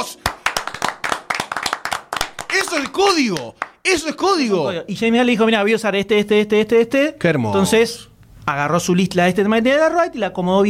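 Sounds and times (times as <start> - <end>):
deliberate hand clapping: 0.0 - 3.8
speech: 2.5 - 10.6.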